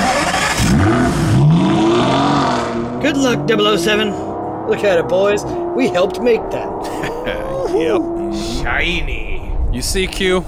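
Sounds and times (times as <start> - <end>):
Aston Martin sports car engine revving as it drives off: 0.0 - 10.4
speech: 3.1 - 10.4
laughter: 6.7 - 9.0, 9.8 - 10.4.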